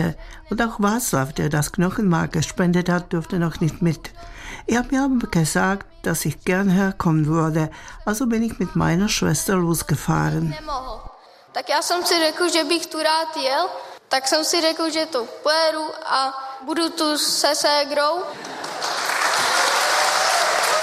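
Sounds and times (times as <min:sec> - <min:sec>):
speech: 0:00.0 - 0:18.9
audience applause: 0:18.3 - 0:20.8.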